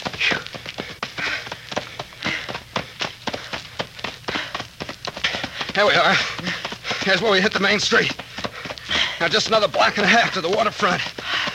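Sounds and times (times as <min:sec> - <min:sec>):
running footsteps through knee-deep fallen leaves: 0:00.0 - 0:11.5
speech: 0:05.8 - 0:08.2, 0:09.2 - 0:11.1.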